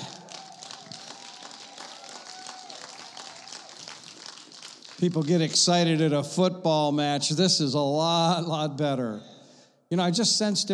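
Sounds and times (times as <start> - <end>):
faint cheering and voices: 0.0 - 4.2
crowd clapping: 0.0 - 6.1
speech: 5.0 - 9.3, 9.9 - 10.7.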